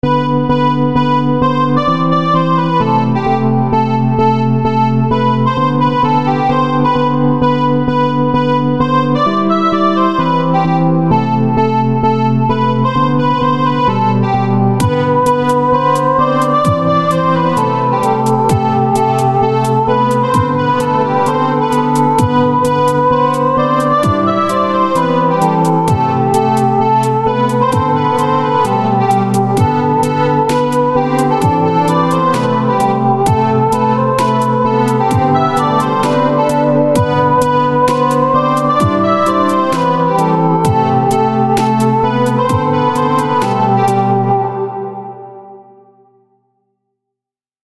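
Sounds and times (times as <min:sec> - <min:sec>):
chiptune music: 0:00.1 - 0:45.0.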